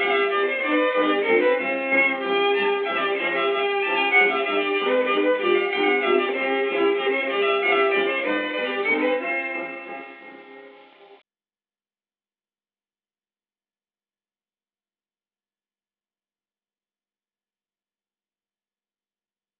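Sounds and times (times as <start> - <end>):
music: 0.0 - 11.2.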